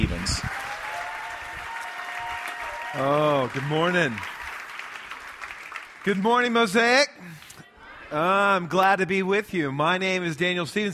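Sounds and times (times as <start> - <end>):
audience applause: 0.0 - 6.8
speech: 2.9 - 4.4, 6.0 - 7.5, 8.1 - 10.9.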